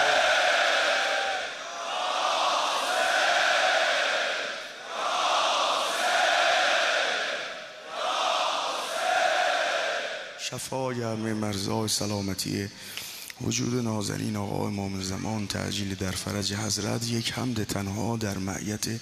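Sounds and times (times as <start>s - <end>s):
mourning crowd shouting in unison: 0.0s - 10.4s
speech: 10.5s - 19.0s.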